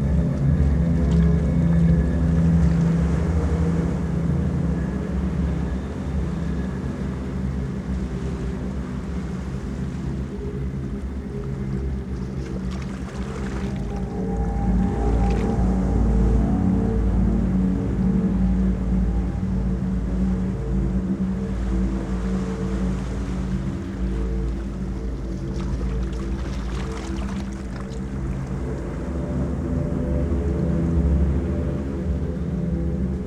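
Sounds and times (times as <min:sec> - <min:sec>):
ambient ocean: 0:00.0 - 0:33.2.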